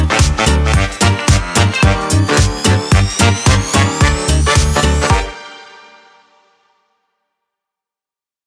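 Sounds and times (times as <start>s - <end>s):
funny catchy retro electro swing music: 0.0s - 5.4s.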